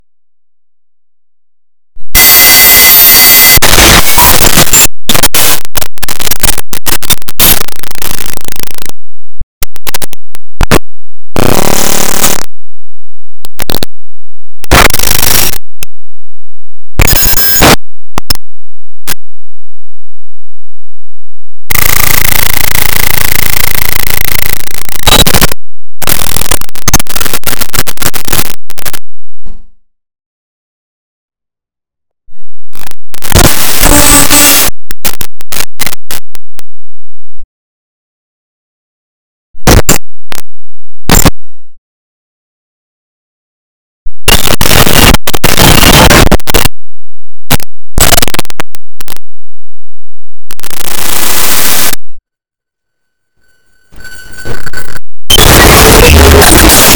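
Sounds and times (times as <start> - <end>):
noise: 0.0 - 30.0, 31.4 - 37.5, 39.6 - 41.8, 44.1 - 56.9.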